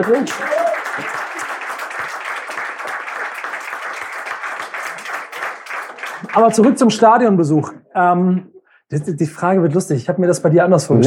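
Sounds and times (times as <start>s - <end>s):
speech: 0.0s - 1.2s, 6.4s - 11.0s
audience applause: 0.0s - 6.9s.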